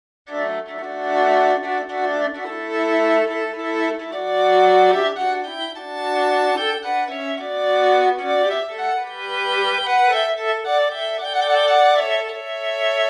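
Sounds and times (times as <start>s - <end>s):
three violins playing: 0.3s - 13.0s.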